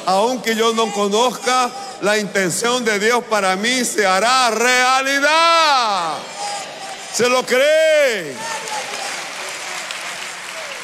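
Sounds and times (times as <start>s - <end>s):
speech: 0.0s - 6.4s, 7.1s - 8.7s
audience applause: 8.3s - 10.8s.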